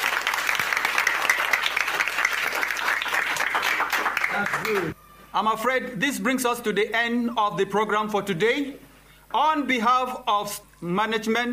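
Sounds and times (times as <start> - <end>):
audience applause at a school programme of Police Children's School 1 in Bauchi: 0.0 - 5.0
speech: 4.4 - 11.5.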